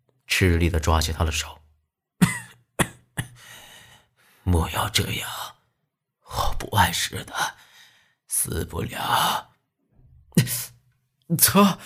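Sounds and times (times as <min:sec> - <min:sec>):
speech: 0:00.4 - 0:01.6, 0:04.5 - 0:05.5, 0:06.3 - 0:07.6, 0:08.4 - 0:09.5, 0:11.3 - 0:11.8
light coughing: 0:02.2 - 0:03.5.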